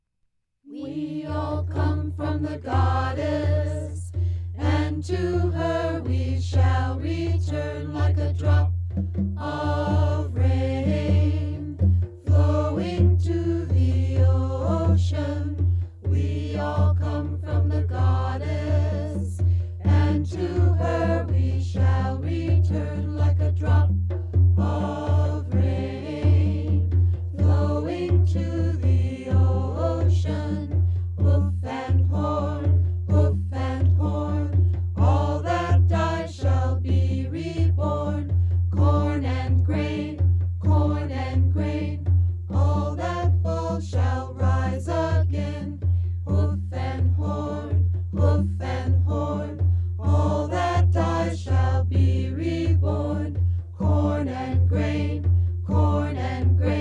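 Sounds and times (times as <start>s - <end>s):
chanting: 0.7s - 8.8s, 9.4s - 56.7s.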